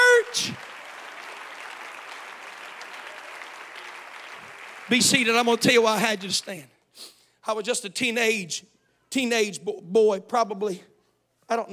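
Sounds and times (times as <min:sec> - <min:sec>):
audience applauding: 0:00.0 - 0:06.5
speech: 0:04.9 - 0:10.9, 0:11.5 - 0:11.7.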